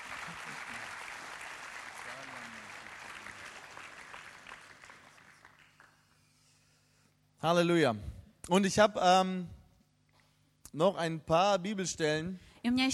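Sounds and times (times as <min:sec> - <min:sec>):
audience applause: 0:00.0 - 0:06.0
speech: 0:07.4 - 0:09.6, 0:10.8 - 0:12.9.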